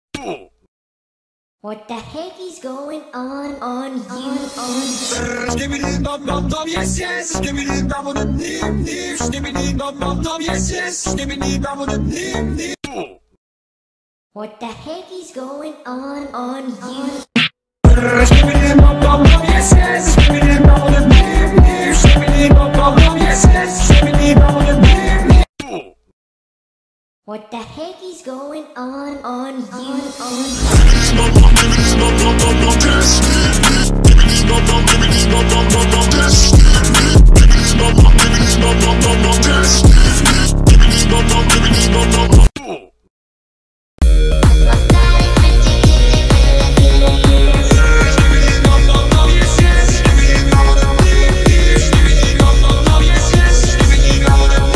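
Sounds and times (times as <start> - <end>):
phonk remix: 17.4 - 25.5, 30.4 - 42.5, 44.0 - 54.7.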